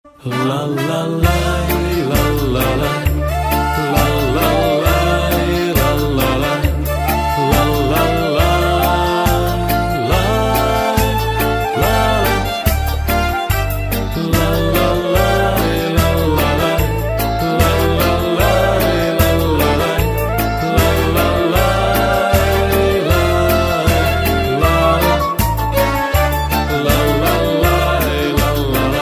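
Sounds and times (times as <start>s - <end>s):
Jewish folk tune: 0.2s - 29.0s.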